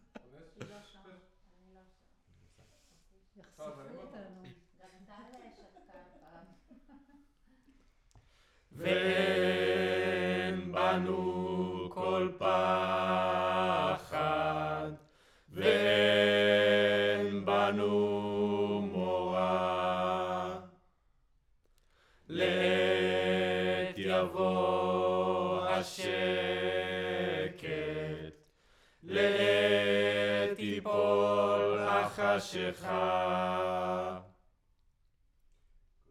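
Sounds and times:
choir singing: 8.8 - 20.8, 22.3 - 34.4.

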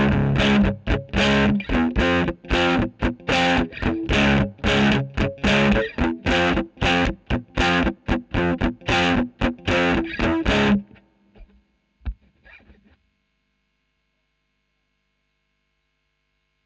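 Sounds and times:
electric guitar recorded with a Royer microphone: 0.0 - 13.0.

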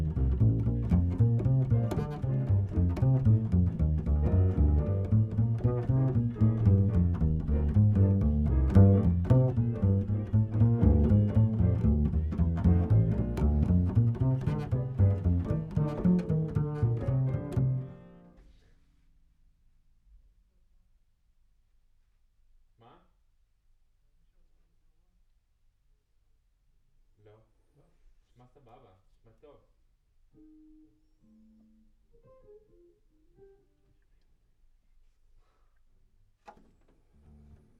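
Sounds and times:
bass: 0.0 - 18.4, 37.0 - 37.7.

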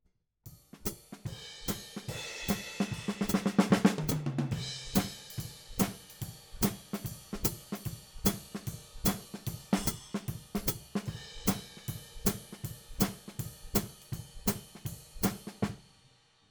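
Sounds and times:
hi-hat: 0.8 - 15.8.

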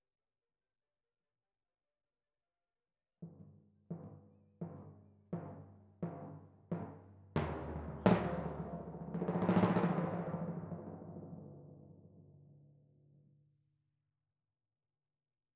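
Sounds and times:
timpani: 3.9 - 12.0.

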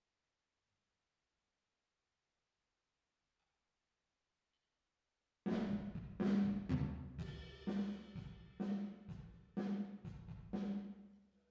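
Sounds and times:
drums with reverb: 5.5 - 11.1.

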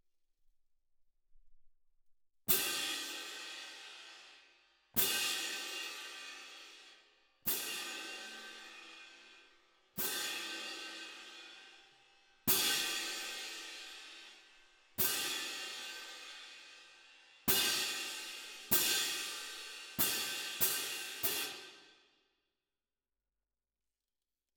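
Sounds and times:
percussion: 2.5 - 22.1.

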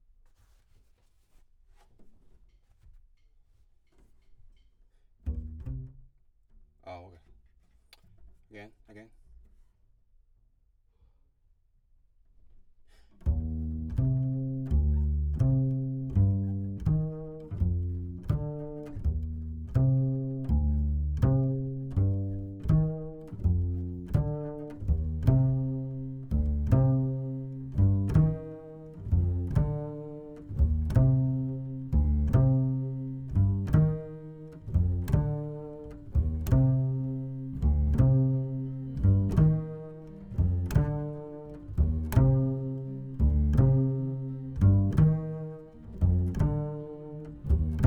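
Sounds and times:
bass: 5.2 - 9.1, 12.5 - 47.8.

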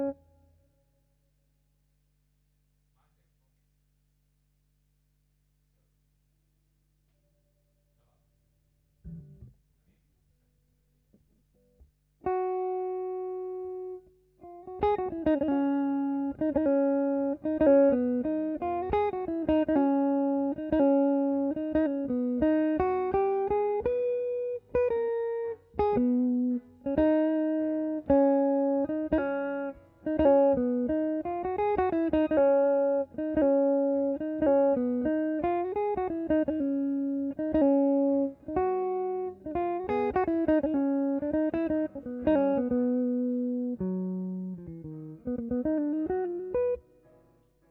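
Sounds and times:
guitar: 0.0 - 0.5, 9.0 - 9.6, 11.1 - 47.6.

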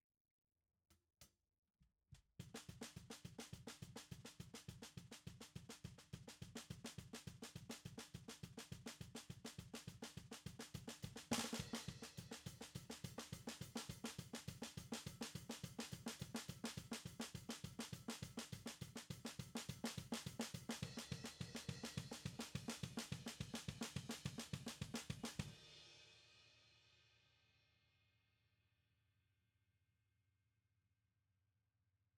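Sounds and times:
snare drum: 2.4 - 26.0.

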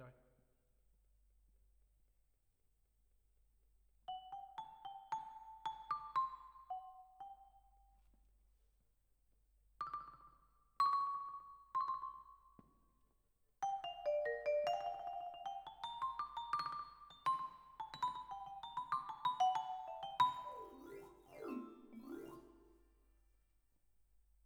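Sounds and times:
vibraphone: 4.1 - 7.8, 9.8 - 12.6, 13.6 - 22.9.

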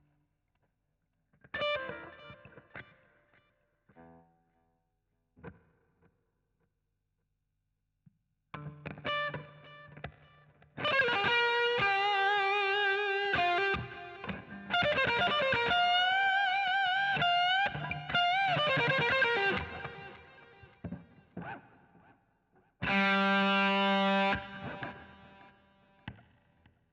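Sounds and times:
guitar solo: 1.6 - 2.9, 8.6 - 10.1, 10.7 - 21.7, 22.8 - 26.2.

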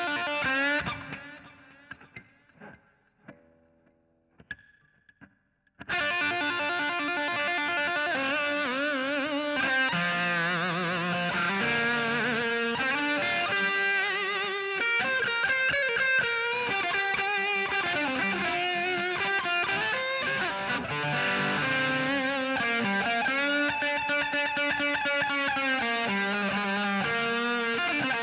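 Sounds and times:
guitar solo: 0.0 - 28.2.

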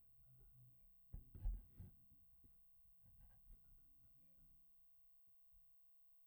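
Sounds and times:
bass: 0.0 - 4.2.

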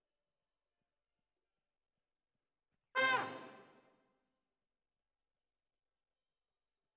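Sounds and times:
trumpet: 3.0 - 3.8.

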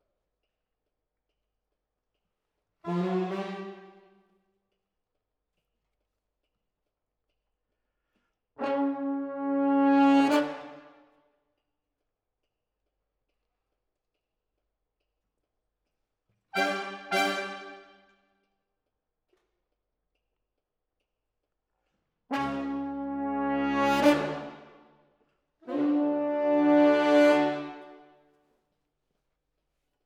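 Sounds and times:
horns playing: 8.6 - 10.9, 16.6 - 17.9, 22.3 - 24.8, 25.6 - 28.1.

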